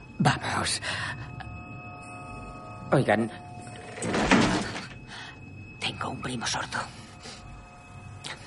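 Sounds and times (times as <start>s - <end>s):
speech: 0.2s - 1.2s, 2.9s - 3.4s, 6.0s - 7.0s
door being shut: 4.0s - 5.0s.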